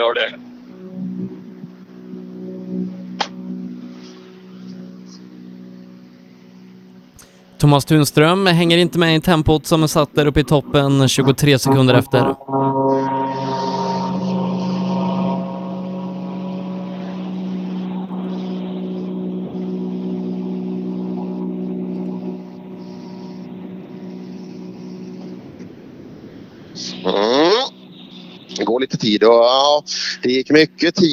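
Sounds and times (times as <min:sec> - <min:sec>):
speech: 0:00.0 - 0:00.5, 0:07.6 - 0:12.7, 0:29.1 - 0:31.1
Citroën DS3 R5 rally car engine: 0:00.0 - 0:31.1.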